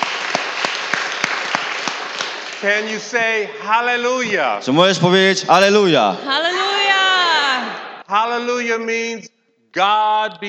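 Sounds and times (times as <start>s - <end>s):
audience clapping: 0.0s - 3.5s
speech: 2.6s - 6.7s, 8.1s - 10.4s.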